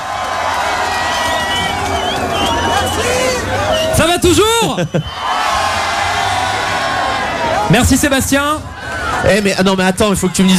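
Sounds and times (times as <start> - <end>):
large concert crowd cheering and shouting: 0.0 - 10.5
whoops and whistles: 1.0 - 5.4
speech: 4.1 - 5.4, 7.7 - 10.5
laughter: 4.6 - 5.2.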